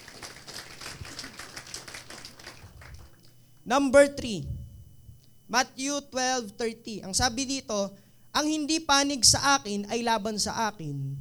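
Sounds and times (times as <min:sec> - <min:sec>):
church congregation clapping during a sermon: 0:00.0 - 0:03.4
speech: 0:03.7 - 0:04.6, 0:05.5 - 0:11.1.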